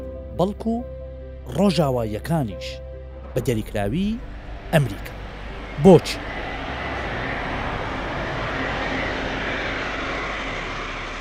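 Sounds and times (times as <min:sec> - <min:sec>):
speech: 0:00.4 - 0:02.8, 0:03.4 - 0:05.2, 0:05.8 - 0:06.4
military aircraft engine roar of US Defense Secretary Lloyd Austin: 0:02.9 - 0:11.2.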